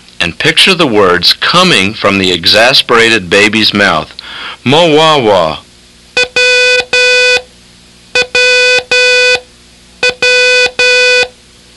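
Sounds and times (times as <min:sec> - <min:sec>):
speech: 0:00.2 - 0:05.6
Morse code beeps short-long-long: 0:06.2 - 0:07.4, 0:08.2 - 0:09.4, 0:10.0 - 0:11.3.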